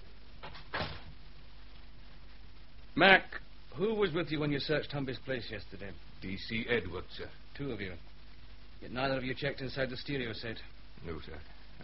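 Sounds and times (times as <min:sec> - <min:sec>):
door closing: 0:00.4 - 0:01.2
speech: 0:03.0 - 0:08.1, 0:08.8 - 0:11.8.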